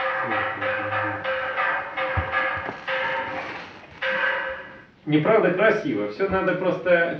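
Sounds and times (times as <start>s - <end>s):
wooden semantron bilo struck in different places: 0.2s - 4.6s
speech: 5.1s - 7.1s.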